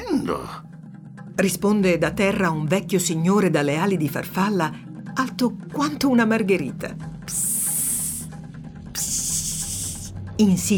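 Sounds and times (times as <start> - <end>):
speech: 0.2 - 0.7, 1.4 - 7.5, 10.4 - 10.7
bright hiss: 7.3 - 8.3, 9.0 - 10.1.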